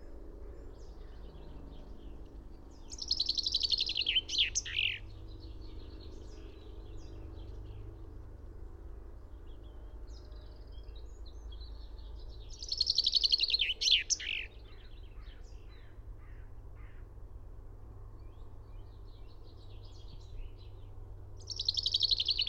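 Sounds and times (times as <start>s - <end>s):
constant low background hum: 0.0s - 22.4s
finch trilling song: 2.8s - 5.1s, 12.6s - 14.6s, 21.5s - 22.4s
bird twitters: 2.9s - 5.0s, 12.6s - 14.5s, 21.5s - 22.4s.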